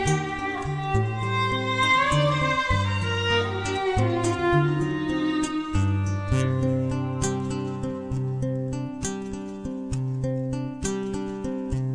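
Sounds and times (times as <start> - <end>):
classical violin: 0.0 - 8.1
classical guitar: 0.0 - 11.9.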